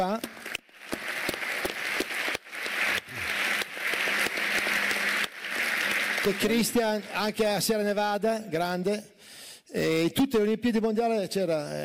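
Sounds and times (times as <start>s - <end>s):
crowd applause: 0.2s - 7.6s
speech: 6.2s - 9.1s, 9.7s - 11.8s.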